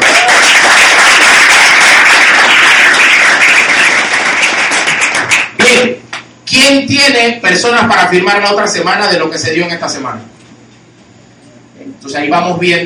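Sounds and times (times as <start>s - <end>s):
audience applause: 0.0s - 5.8s
speech: 6.9s - 10.4s, 12.0s - 12.8s.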